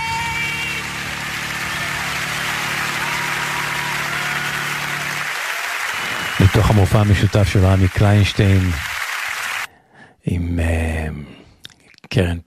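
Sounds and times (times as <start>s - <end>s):
audience clapping: 0.0s - 9.7s
speech: 6.5s - 9.0s, 10.3s - 11.3s, 12.1s - 12.4s.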